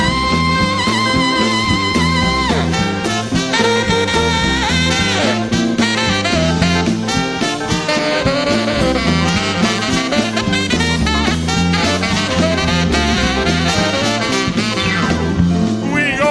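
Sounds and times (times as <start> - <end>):
saxophone honking: 0.0 - 15.4.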